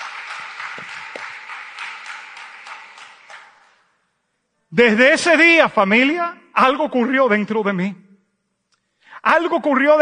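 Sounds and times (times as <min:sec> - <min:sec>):
audience clapping: 0:00.0 - 0:04.0
speech: 0:04.7 - 0:08.0, 0:09.2 - 0:09.9.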